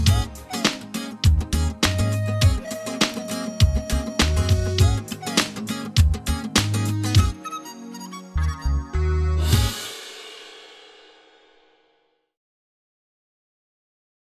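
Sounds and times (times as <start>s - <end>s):
flute: 0.1s - 9.7s.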